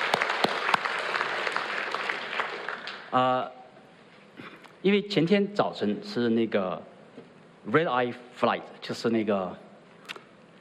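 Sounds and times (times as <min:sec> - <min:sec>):
audience applause: 0:00.0 - 0:03.3
speech: 0:03.1 - 0:03.6, 0:04.8 - 0:06.9, 0:07.6 - 0:09.6.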